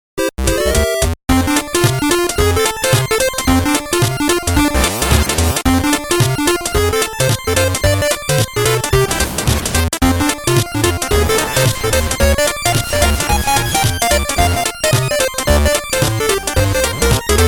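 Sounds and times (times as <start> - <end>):
retro video game music: 0.2 - 17.4.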